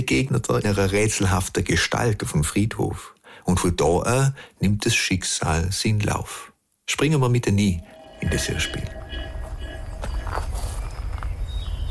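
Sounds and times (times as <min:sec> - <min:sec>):
speech: 0:00.0 - 0:09.0
slow footsteps walking along two rows of graves in a village cemetery: 0:07.8 - 0:11.8.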